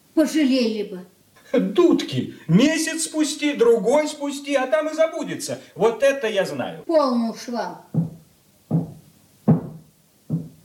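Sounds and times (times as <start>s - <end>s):
speech: 0.2s - 8.0s
knocking on a door: 7.9s - 10.6s.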